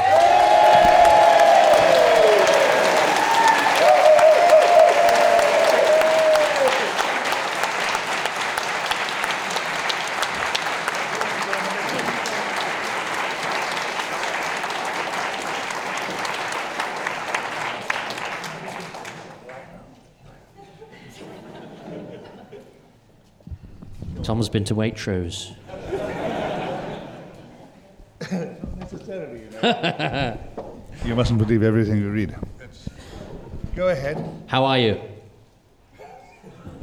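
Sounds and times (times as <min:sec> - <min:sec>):
whoops and high cheering: 0:00.0 - 0:07.0
crowd applauding: 0:00.0 - 0:19.6
laughter: 0:20.6 - 0:23.0, 0:25.6 - 0:30.6, 0:35.9 - 0:36.8
speech: 0:24.4 - 0:25.6, 0:29.0 - 0:30.5, 0:31.1 - 0:32.5, 0:33.8 - 0:35.1.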